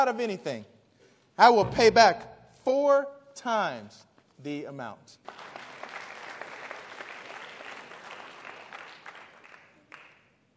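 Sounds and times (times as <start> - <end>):
speech: 0.0 - 0.7, 1.4 - 5.5
audience clapping: 5.2 - 10.4.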